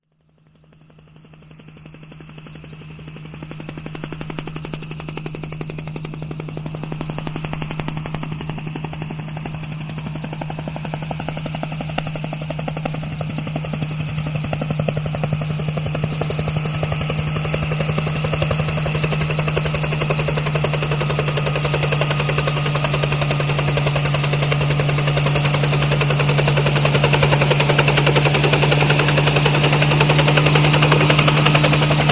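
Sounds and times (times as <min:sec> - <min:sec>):
helicopter: 0:00.0 - 0:32.1.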